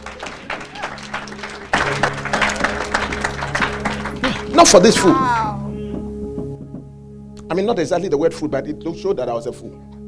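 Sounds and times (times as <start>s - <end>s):
crowd applause: 0.0s - 5.1s
speech: 4.6s - 5.4s, 7.6s - 9.9s.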